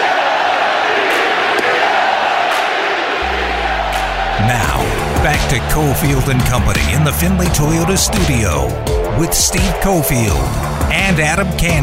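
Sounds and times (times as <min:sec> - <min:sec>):
large crowd of baseball fans chanting at an Oakland A's game: 0:00.0 - 0:07.0
speech: 0:04.4 - 0:11.8.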